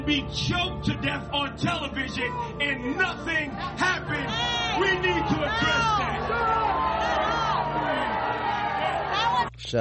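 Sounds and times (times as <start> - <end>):
speech: 0.1 - 6.7
crowd booing at a gathering over police violence: 2.1 - 9.5.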